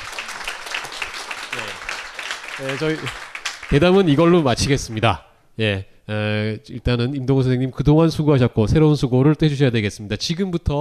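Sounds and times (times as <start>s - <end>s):
audience applause: 0.0s - 5.0s
speech: 2.6s - 10.7s.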